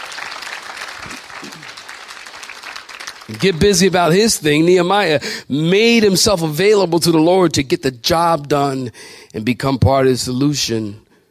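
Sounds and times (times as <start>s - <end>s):
audience clapping hands: 0.0s - 4.7s
speech: 1.0s - 1.8s, 3.3s - 11.0s.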